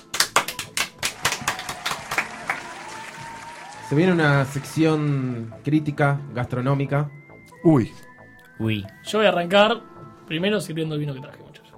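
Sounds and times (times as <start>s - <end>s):
applause: 0.0s - 5.2s
speech: 3.9s - 11.4s.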